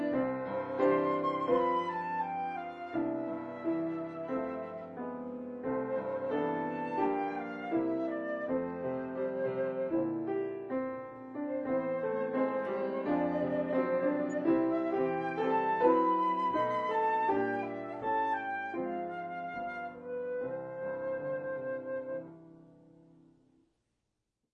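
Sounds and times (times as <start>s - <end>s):
Christmas song on flute: 0.0s - 10.8s, 11.4s - 22.6s
piano: 0.0s - 23.6s.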